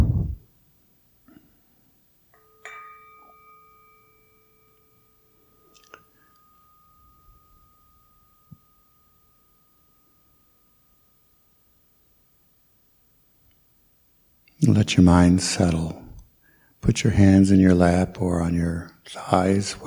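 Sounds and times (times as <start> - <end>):
meditation bell ringing: 2.4 - 12.1
speech: 14.6 - 16.0, 16.8 - 19.8.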